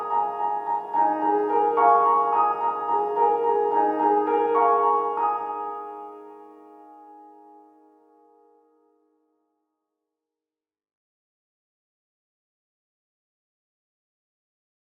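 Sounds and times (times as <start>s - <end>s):
piano: 0.0s - 9.1s.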